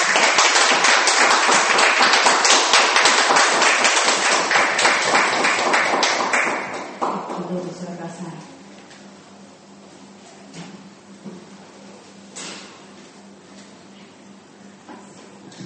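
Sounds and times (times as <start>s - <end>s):
group of people hand clapping in thanks: 0.0s - 7.6s.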